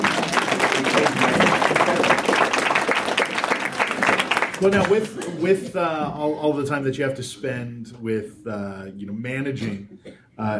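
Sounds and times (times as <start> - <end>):
applause: 0.0 - 5.3
speech: 4.6 - 10.5.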